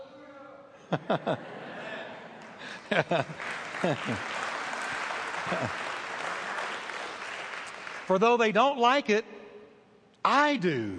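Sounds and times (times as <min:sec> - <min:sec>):
speech: 0:00.9 - 0:01.6, 0:02.9 - 0:04.3, 0:05.5 - 0:05.9, 0:08.1 - 0:09.4, 0:10.2 - 0:10.9
laughter: 0:00.9 - 0:06.1
crowd cheering with shouts and whoops: 0:02.5 - 0:08.2.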